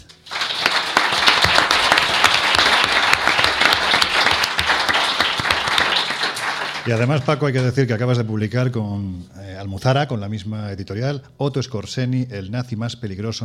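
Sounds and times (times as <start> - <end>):
audience applause: 0.2 - 7.6
speech: 6.9 - 13.4.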